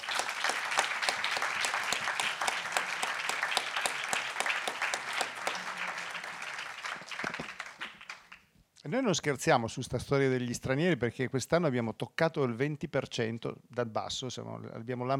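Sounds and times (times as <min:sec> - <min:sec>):
audience applause: 0:00.0 - 0:08.5
speech: 0:08.8 - 0:15.1.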